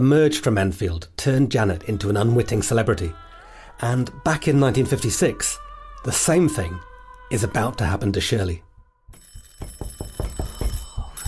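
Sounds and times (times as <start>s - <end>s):
speech: 0.0s - 8.7s
electric front doorbell ringing: 9.1s - 11.2s.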